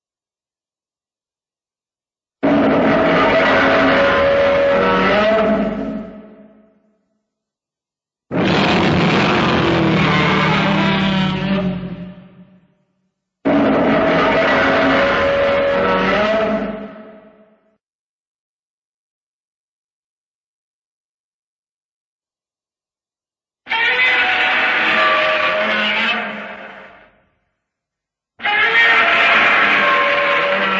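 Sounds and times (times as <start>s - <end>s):
TV Godzilla monster voice: 2.4s - 6.2s, 8.3s - 12.2s, 13.5s - 17.0s, 23.7s - 27.1s, 28.4s - 30.7s.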